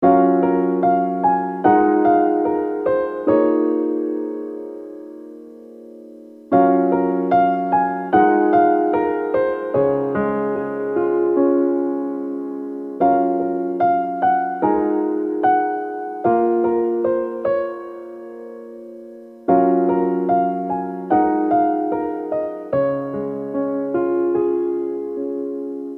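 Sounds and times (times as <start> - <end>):
piano: 0.0 - 25.9.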